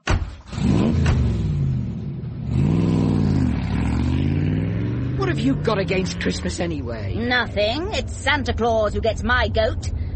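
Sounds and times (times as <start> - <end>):
Ferrari sports car engine revving: 0.5 - 8.3
speech: 5.4 - 10.0.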